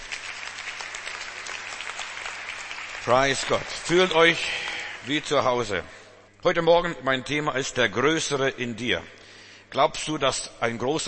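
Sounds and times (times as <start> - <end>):
church congregation applause welcoming first-time guests: 0.0 - 5.9
speech: 3.1 - 11.0.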